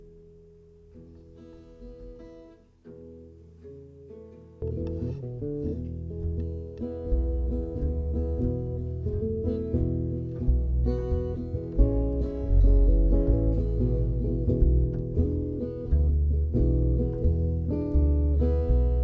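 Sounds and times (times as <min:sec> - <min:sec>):
jam session: 0:04.6 - 0:19.0.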